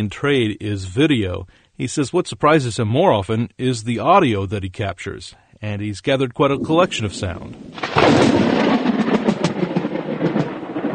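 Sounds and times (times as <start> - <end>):
speech: 0.0 - 8.9
thunder crack of a close lightning strike: 6.5 - 10.9.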